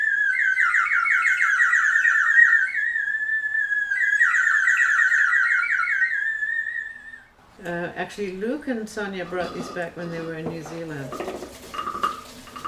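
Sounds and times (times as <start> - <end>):
water-filled whistle being blown: 0.0 - 7.3
speech: 7.6 - 11.6.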